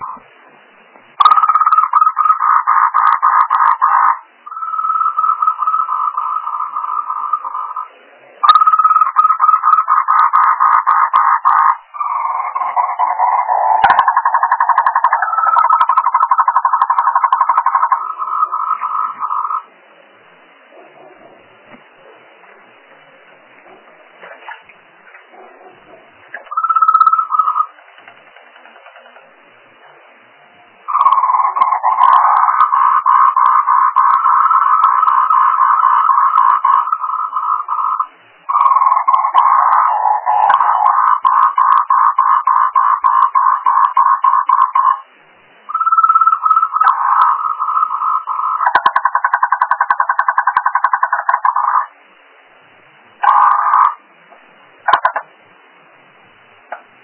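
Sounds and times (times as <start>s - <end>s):
frog: 0.0s - 0.3s, 1.2s - 19.7s, 26.3s - 29.3s, 30.8s - 45.1s, 45.7s - 52.0s, 53.2s - 54.0s, 54.8s - 55.3s.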